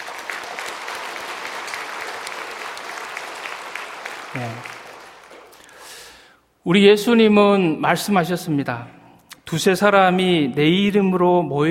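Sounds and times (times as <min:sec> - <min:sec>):
crowd applause: 0:00.0 - 0:06.1
speech: 0:04.4 - 0:04.8, 0:06.6 - 0:11.6.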